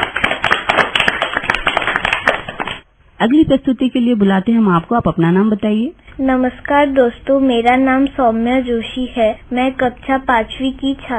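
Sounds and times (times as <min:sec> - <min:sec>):
loud crowd clapping for children: 0:00.0 - 0:02.8
speech: 0:03.2 - 0:11.1.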